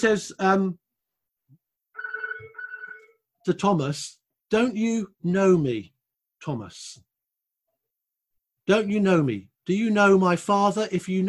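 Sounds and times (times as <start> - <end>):
speech: 0.0 - 0.8, 3.4 - 7.1, 8.7 - 11.2
telephone ringing with electronic trill: 1.9 - 3.3.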